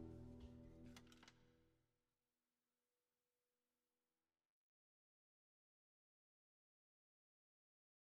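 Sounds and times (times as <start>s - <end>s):
acoustic music: 0.0s - 1.0s.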